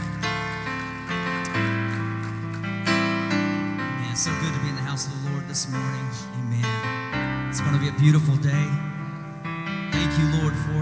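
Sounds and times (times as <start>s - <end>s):
audience clapping hands: 0.0s - 2.8s
loud sustained keyboard chords: 0.0s - 10.8s
speech: 5.0s - 6.8s, 7.5s - 8.9s, 10.2s - 10.8s.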